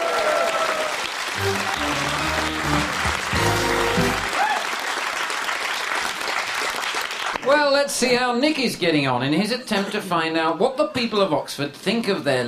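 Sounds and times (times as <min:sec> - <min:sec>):
audience applause: 0:00.0 - 0:07.5
speech: 0:07.5 - 0:12.4.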